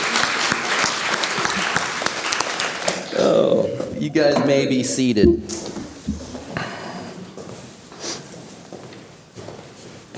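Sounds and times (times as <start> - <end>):
audience applause: 0.0 - 3.6
speech: 3.2 - 5.7.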